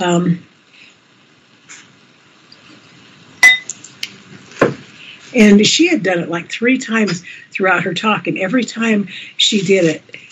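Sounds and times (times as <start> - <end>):
speech: 0.0 - 0.5, 5.3 - 10.2
bowls struck as music: 3.4 - 3.7.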